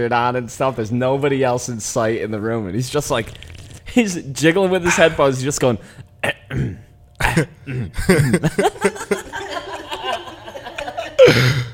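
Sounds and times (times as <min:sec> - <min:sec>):
speech: 0:00.0 - 0:09.1
man clearing throat: 0:06.2 - 0:08.5, 0:11.1 - 0:11.7
laughter: 0:08.0 - 0:11.7.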